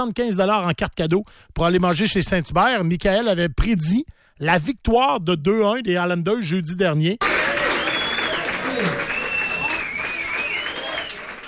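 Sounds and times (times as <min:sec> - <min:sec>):
speech: 0:00.0 - 0:07.5
applause: 0:07.2 - 0:11.4.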